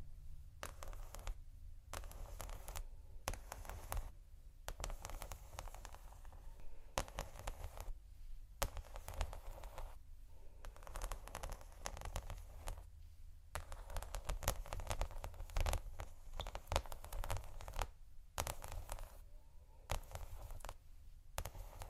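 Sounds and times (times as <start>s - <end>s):
slow scratching on textured surfaces: 0.6s - 8.0s, 8.6s - 12.9s, 13.5s - 21.8s.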